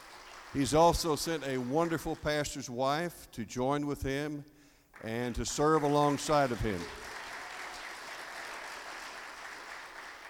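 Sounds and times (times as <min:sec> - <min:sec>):
audience applauding: 0:00.0 - 0:02.3, 0:05.0 - 0:10.2
speech: 0:00.5 - 0:07.1.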